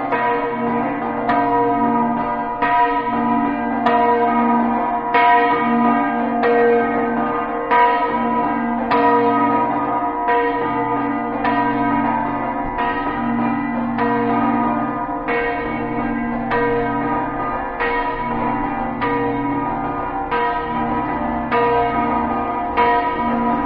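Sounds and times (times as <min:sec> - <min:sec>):
church bells ringing in Talmassons: 0:00.0 - 0:23.6.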